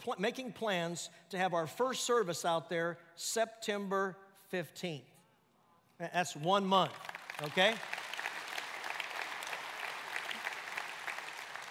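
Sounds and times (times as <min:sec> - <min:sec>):
speech: 0:00.0 - 0:05.1, 0:06.0 - 0:08.0
audience clapping and applauding: 0:06.8 - 0:11.6.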